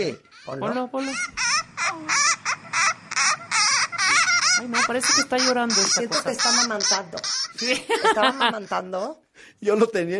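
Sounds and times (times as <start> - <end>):
speech: 0.0 - 2.4, 4.6 - 10.1
bat calls recorded in Malaysia: 0.0 - 9.2.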